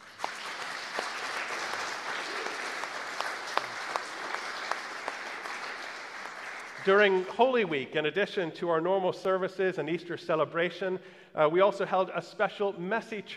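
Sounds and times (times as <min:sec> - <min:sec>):
audience applause: 0:00.0 - 0:07.4
speech: 0:06.8 - 0:13.3.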